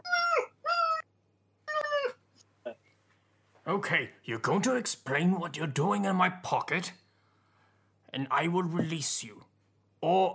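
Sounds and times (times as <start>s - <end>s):
voice imitating a small creature's squeaks: 0.0s - 1.1s, 1.7s - 2.8s
speech: 3.7s - 7.0s, 8.1s - 10.3s.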